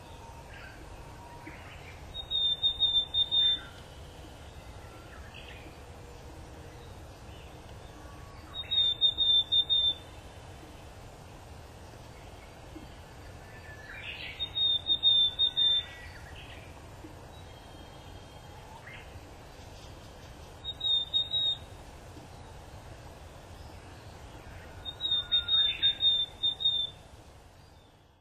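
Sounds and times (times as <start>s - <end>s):
willow tit calling: 1.4s - 4.6s, 8.4s - 10.2s, 13.6s - 22.5s, 24.8s - 27.1s.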